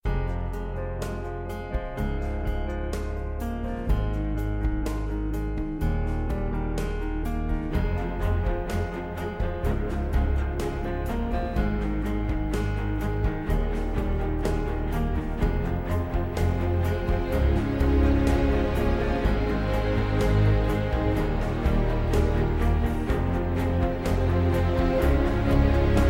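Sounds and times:
ambient music: 0.0s - 26.0s.

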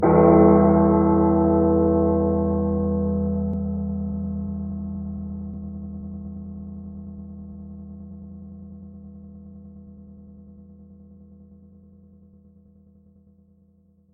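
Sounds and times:
deep bell clang: 0.0s - 3.9s.

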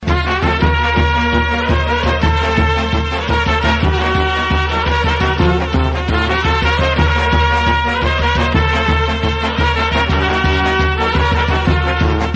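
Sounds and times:
Serbian trumpets playing: 0.0s - 12.3s.

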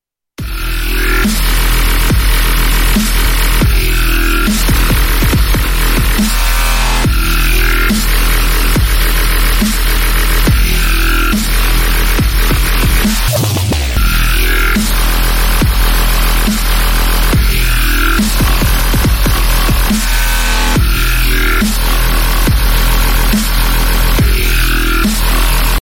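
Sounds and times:
dubstep music: 0.4s - 25.8s.

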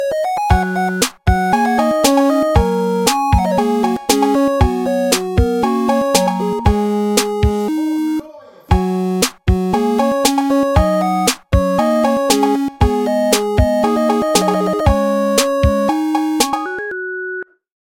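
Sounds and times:
8-bit theme music: 0.0s - 17.0s.

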